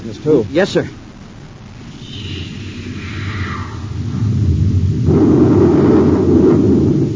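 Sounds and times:
speech: 0.1s - 1.0s
space torpedo rumbling explosion: 1.8s - 7.1s
space torpedo whistling as it launches: 1.8s - 7.1s.

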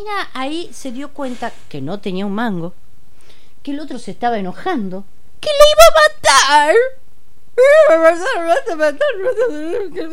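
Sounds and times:
speech: 0.0s - 2.8s, 3.6s - 7.0s, 7.6s - 10.1s
woman crying and wailing: 7.6s - 10.1s.

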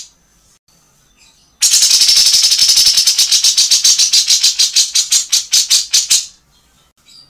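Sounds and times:
grey-cheeked bulbul harsh rattle: 1.7s - 6.3s.

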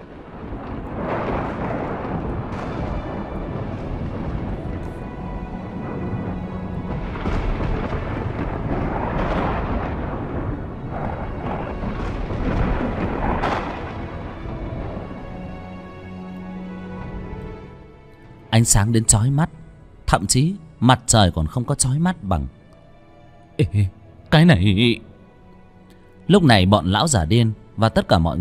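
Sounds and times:
deafening thunder: 0.0s - 17.8s
speech: 18.6s - 22.6s, 23.6s - 25.1s, 26.3s - 28.4s.

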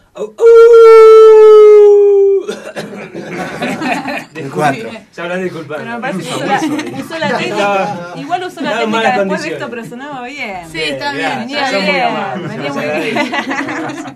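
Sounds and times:
speech: 0.2s - 1.9s, 2.5s - 14.1s
person imitating a wolf howl: 0.2s - 2.5s
chatter and laughter from several people: 2.8s - 14.1s.

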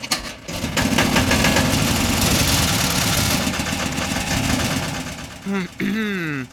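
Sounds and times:
motor engine starting and running: 0.2s - 5.4s.

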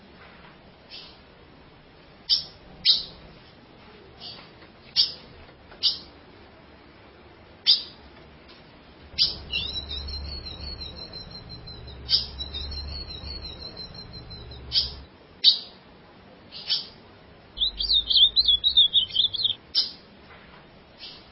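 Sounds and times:
ultramarine grosbeak singing a warbling phrase: 2.3s - 3.2s, 9.1s - 15.7s, 17.6s - 20.0s.

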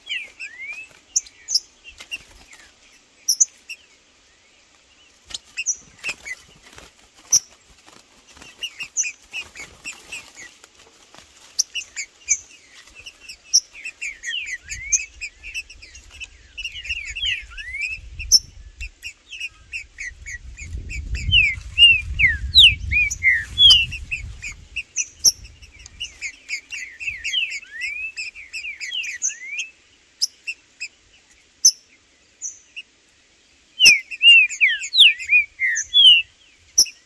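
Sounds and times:
Green-winged saltator song with twittering and slurred whistles: 0.0s - 10.6s, 11.5s - 37.0s.

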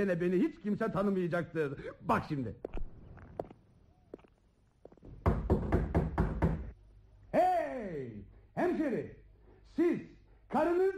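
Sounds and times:
speech: 0.0s - 2.8s, 7.8s - 9.2s, 9.8s - 10.9s
knocking on a door: 5.1s - 6.7s.

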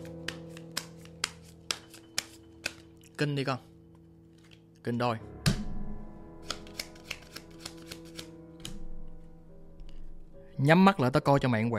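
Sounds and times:
deck of playing cards slapping during a shuffle: 0.0s - 3.2s, 6.4s - 8.8s
speech: 3.2s - 3.7s, 4.8s - 5.4s, 10.6s - 11.7s.

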